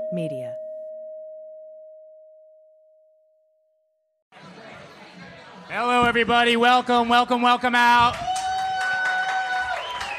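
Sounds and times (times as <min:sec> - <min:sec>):
speech: 0:00.1 - 0:00.6, 0:05.7 - 0:08.3
comedy club audience applause and cheers: 0:04.4 - 0:10.1.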